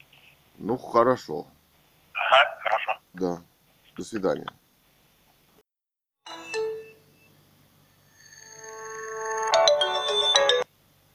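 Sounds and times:
speech: 0.6s - 1.6s, 3.2s - 4.6s
electronic phone ringtone melody: 6.3s - 7.4s, 8.0s - 10.7s.

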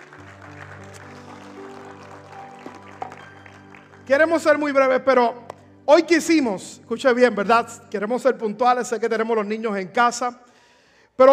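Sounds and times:
audience applause: 0.0s - 4.6s
speech: 4.1s - 10.5s.

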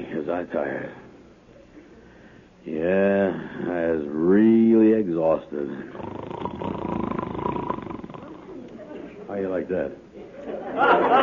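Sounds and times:
speech: 0.2s - 1.1s, 2.6s - 6.8s, 9.3s - 11.2s
person imitating snoring: 5.9s - 8.6s
laughter: 10.2s - 11.2s.

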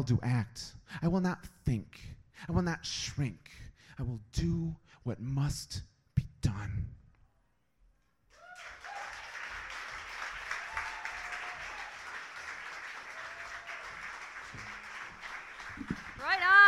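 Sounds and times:
speech: 0.0s - 7.0s
audience applause: 8.4s - 16.6s
scattered cheers: 8.4s - 16.6s
person speaking loudly: 16.2s - 16.6s.

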